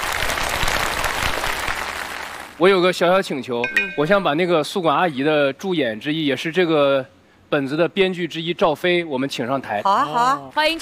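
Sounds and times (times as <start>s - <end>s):
audience applause for stage performers: 0.0s - 2.6s
speech: 2.6s - 10.7s.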